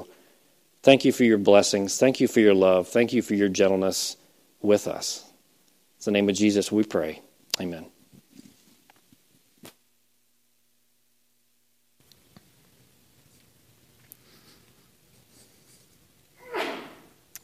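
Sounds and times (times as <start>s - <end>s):
speech: 0.8s - 5.3s, 6.0s - 7.9s
person sneezing: 16.4s - 17.2s.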